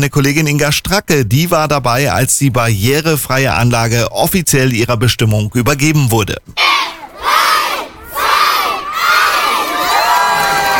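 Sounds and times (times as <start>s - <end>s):
speech: 0.0s - 7.0s
crowd of children shouting and cheering: 6.6s - 10.7s.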